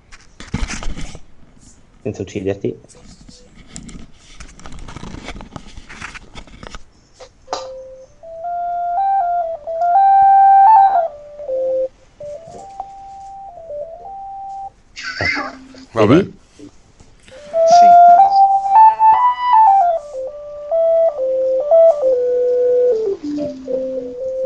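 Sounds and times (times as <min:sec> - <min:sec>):
crackly buzzing static from light signal converted into sound: 0:00.0 - 0:24.4
speech: 0:02.0 - 0:03.1, 0:16.0 - 0:16.4
electronic tone stepping between pitches from light signal converted into sound: 0:07.5 - 0:14.7, 0:17.3 - 0:24.4.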